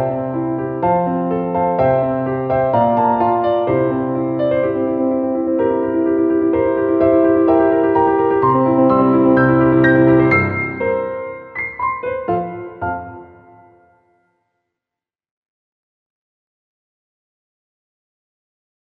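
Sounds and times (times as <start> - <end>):
piano: 0.0 - 14.5.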